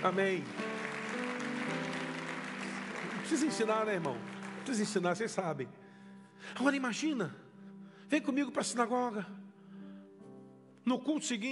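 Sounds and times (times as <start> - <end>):
speech: 0.0 - 0.6, 3.3 - 5.8, 6.4 - 7.4, 8.1 - 9.4, 10.8 - 11.5
audience applause: 0.0 - 5.3.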